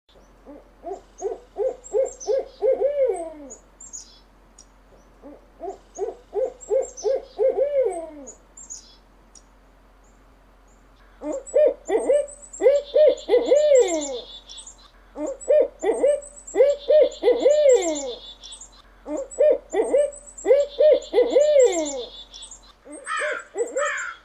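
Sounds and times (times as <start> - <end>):
owl hooting: 0.4 - 4.2, 5.1 - 8.9, 11.0 - 24.2.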